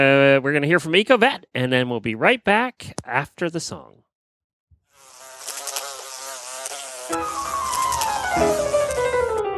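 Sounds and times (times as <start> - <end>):
speech: 0.0 - 4.0, 8.4 - 8.6
flies buzzing: 4.9 - 9.4.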